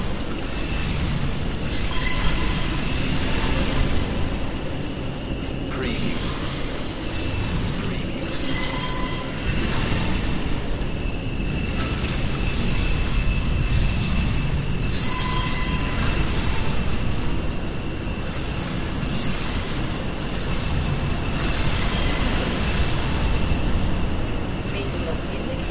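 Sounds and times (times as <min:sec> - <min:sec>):
starship interior ambience: 0:00.0 - 0:25.7.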